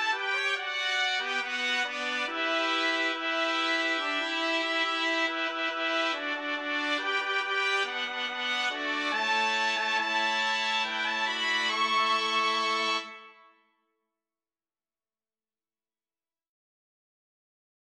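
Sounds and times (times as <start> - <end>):
fanfare on trumpets: 0.0 - 13.6.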